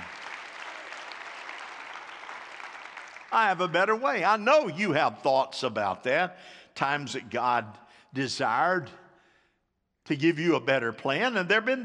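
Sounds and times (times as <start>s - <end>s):
full room of people applauding: 0.0s - 3.9s
speech: 3.3s - 9.0s, 10.1s - 11.8s.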